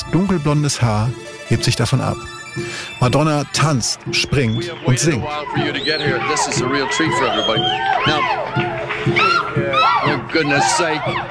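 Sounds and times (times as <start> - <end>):
speech: 0.1 - 11.2
concert audience cheering: 3.0 - 11.2.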